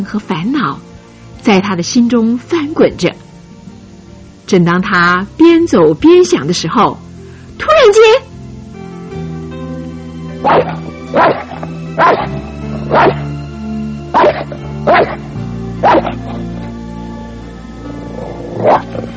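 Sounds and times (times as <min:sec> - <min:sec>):
speech: 0:00.0 - 0:03.3, 0:04.5 - 0:07.1, 0:07.7 - 0:08.3, 0:10.4 - 0:11.4, 0:12.0 - 0:12.3, 0:12.9 - 0:13.2
dog barking: 0:10.4 - 0:13.3, 0:14.1 - 0:16.4, 0:18.2 - 0:19.1.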